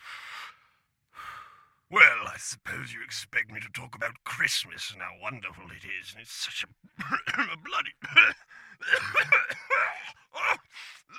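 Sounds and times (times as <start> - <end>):
speech: 1.9 - 10.9
strained coughing fit: 6.9 - 10.6.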